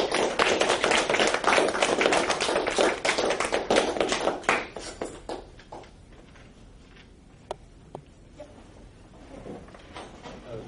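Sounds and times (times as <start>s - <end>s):
audience applause: 0.0s - 5.4s.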